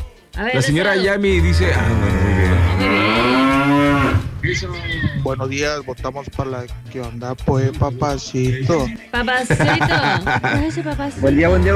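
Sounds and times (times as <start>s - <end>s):
speech: 0.4s - 3.4s, 4.4s - 11.7s
cow mooing: 1.2s - 4.7s
laughter: 9.3s - 11.2s.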